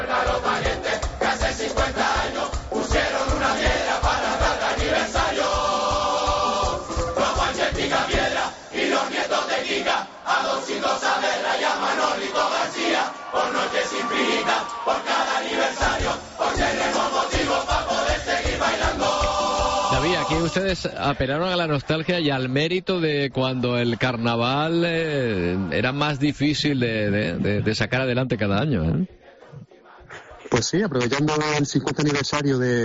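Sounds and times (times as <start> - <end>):
loud rhythmic music with a steady pounding beat: 0.0 - 9.7, 11.0 - 21.0
carnival audience cheering at the 50th anniversary Carnival of Las Palmas: 0.0 - 20.8
speech: 20.5 - 29.2, 30.5 - 32.8.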